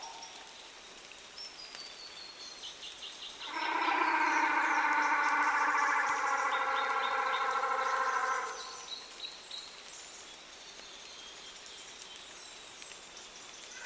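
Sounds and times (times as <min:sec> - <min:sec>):
reconstructed moa call: 0:03.5 - 0:08.9.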